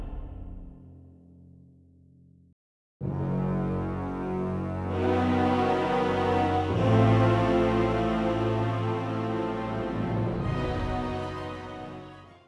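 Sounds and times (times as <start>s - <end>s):
epic music: 3.0s - 12.4s.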